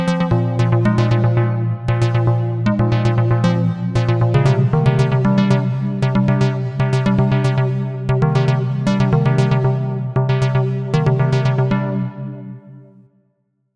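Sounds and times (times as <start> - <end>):
chill arpeggio: 0.2 - 12.7.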